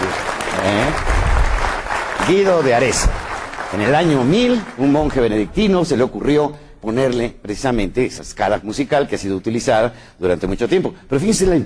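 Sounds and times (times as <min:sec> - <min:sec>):
audience applause: 0:00.0 - 0:05.4
speech: 0:00.6 - 0:01.2, 0:02.3 - 0:11.6.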